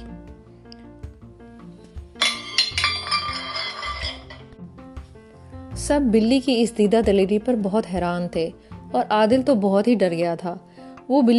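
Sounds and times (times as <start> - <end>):
soft music: 0.0 - 11.3
plate of meat crashing to the floor: 2.2 - 4.4
speech: 5.9 - 11.3.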